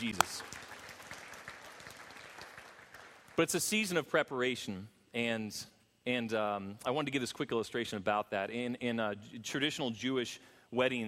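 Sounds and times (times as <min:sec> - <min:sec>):
speech: 0:00.0 - 0:00.6, 0:03.4 - 0:11.0
audience hand clapping: 0:00.0 - 0:03.6.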